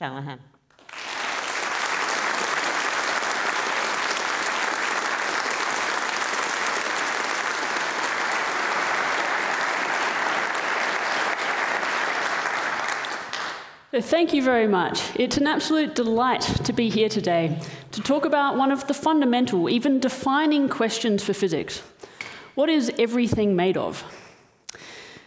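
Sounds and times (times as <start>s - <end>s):
speech: 0.0s - 0.6s, 14.0s - 22.0s, 22.6s - 24.2s
audience applause welcoming a physicist to the stage at a science talk: 0.7s - 13.8s.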